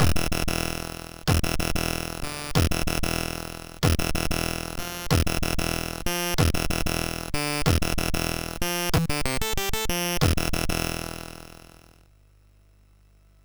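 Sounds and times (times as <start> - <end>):
MOS6581 SID chip synth sound: 1.3 - 10.9.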